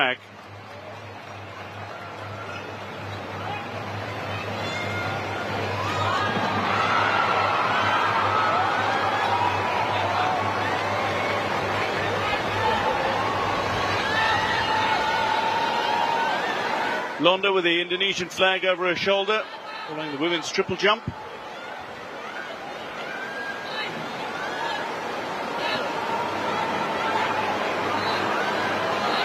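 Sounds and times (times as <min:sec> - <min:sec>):
speech: 0:00.0 - 0:00.4, 0:17.2 - 0:21.2
crowd applauding: 0:00.0 - 0:29.2.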